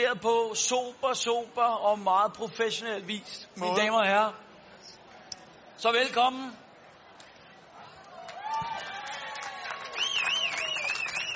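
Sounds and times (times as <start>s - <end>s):
speech: 0.0s - 4.5s, 5.8s - 6.6s
people clapping: 8.1s - 11.3s.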